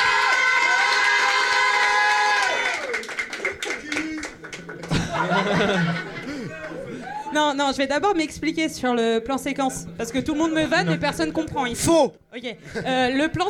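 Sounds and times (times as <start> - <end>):
people clapping: 0.0 - 7.2
crowd cheering and whooping: 0.0 - 7.4
people laughing: 3.7 - 7.3
speech: 5.2 - 6.1, 7.3 - 13.4.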